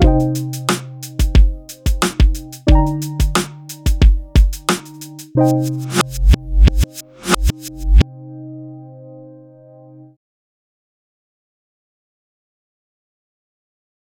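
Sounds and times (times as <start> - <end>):
blues music: 0.0 - 7.7.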